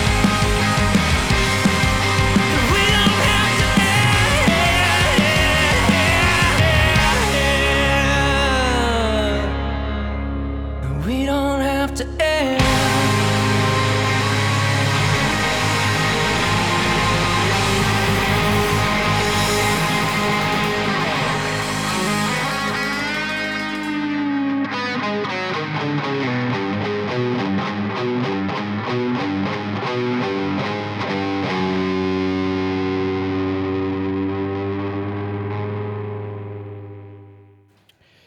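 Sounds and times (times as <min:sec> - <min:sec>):
rock song played from album: 0:00.0 - 0:36.1.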